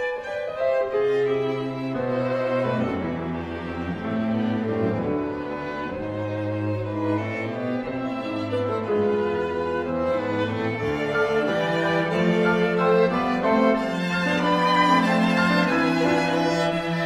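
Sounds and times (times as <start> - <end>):
piano quintet with two violins, viola, cello and piano playing: 0.0 - 17.0.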